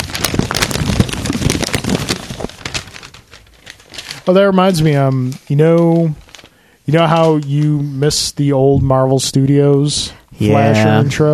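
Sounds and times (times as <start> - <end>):
papers rustling: 0.0 - 7.9
speech: 4.3 - 6.2, 6.9 - 11.3.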